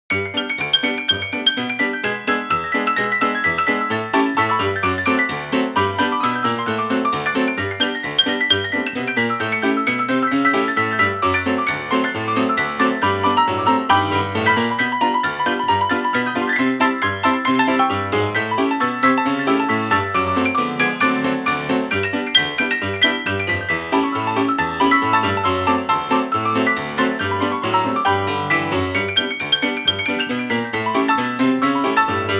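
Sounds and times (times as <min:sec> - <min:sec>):
old honky-tonk music: 0:00.1 - 0:32.3.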